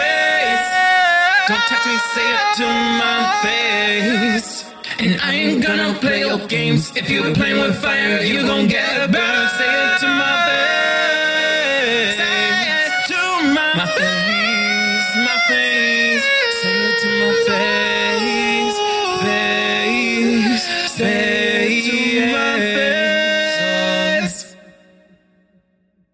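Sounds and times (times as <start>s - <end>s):
trap a cappella vocals in B-flat minor at 137 BPM: 0.0s - 25.4s.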